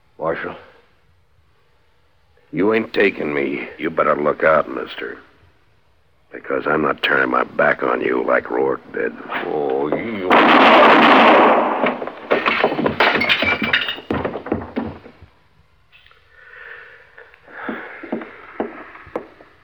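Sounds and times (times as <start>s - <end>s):
speech: 0.3s - 0.7s, 2.5s - 5.3s, 6.3s - 11.4s
sharp cracks and clatter: 9.3s - 15.2s
gunshot in an Old West showdown: 10.3s - 12.8s.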